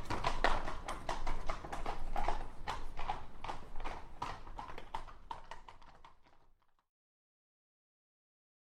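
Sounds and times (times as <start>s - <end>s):
horse hoofbeats in a quick trot: 0.0s - 6.8s.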